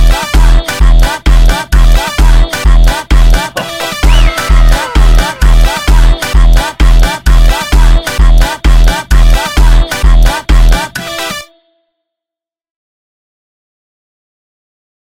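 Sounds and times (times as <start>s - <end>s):
funk music: 0.0s - 11.4s.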